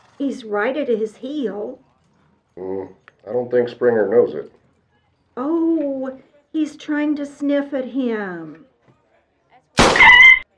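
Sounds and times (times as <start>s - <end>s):
speech: 0.2s - 1.9s, 2.6s - 4.6s, 5.4s - 8.7s
gunshot: 9.8s - 10.4s.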